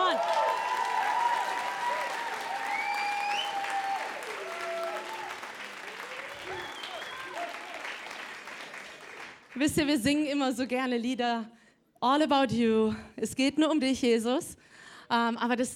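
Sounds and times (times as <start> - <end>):
scattered cheers and whoops: 0.0 - 8.0
crowd clapping: 0.0 - 9.8
speech: 9.6 - 15.7.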